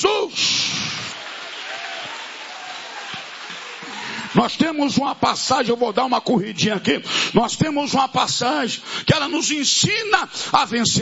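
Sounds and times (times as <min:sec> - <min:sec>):
audience clapping: 0:00.4 - 0:05.2
speech: 0:04.3 - 0:11.0.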